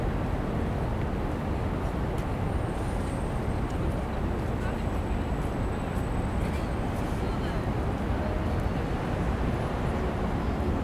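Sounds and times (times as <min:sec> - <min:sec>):
traffic roar on the plaza in front of Tokyo Station: 0:00.0 - 0:10.8.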